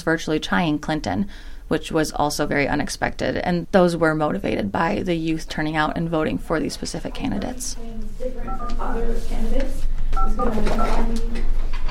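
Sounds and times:
speech: 0.0s - 11.6s
telephone keypad dialing tones: 8.5s - 9.0s, 10.2s - 11.1s.

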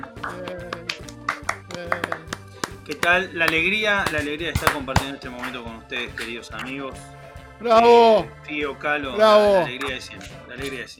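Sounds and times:
scattered applause: 0.0s - 6.7s
speech: 0.2s - 0.7s, 2.9s - 10.9s.

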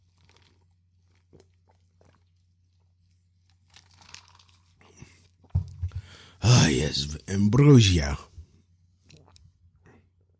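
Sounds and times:
person chewing cereal: 0.0s - 5.4s
speech: 6.4s - 8.3s.

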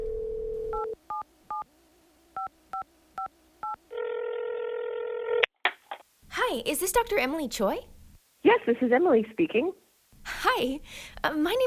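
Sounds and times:
telephone dial tone: 0.0s - 1.6s, 3.6s - 5.4s
speech: 6.5s - 9.8s, 10.5s - 11.6s.

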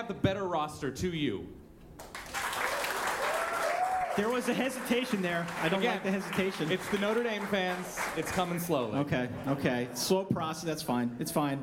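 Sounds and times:
speech: 0.0s - 2.2s, 4.2s - 11.6s
audience applause: 2.0s - 8.8s.

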